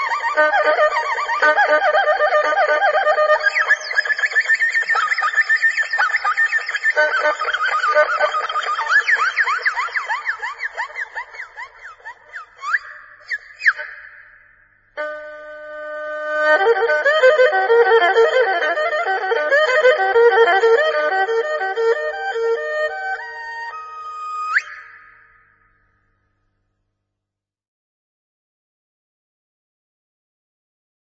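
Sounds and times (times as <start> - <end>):
erhu playing: 0.0 - 11.7, 15.0 - 24.9.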